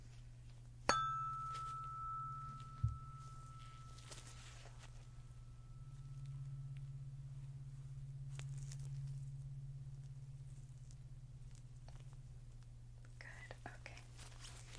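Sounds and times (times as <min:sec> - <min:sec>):
constant low hum: 0:00.0 - 0:14.7
tuning fork struck and ringing: 0:00.8 - 0:11.7.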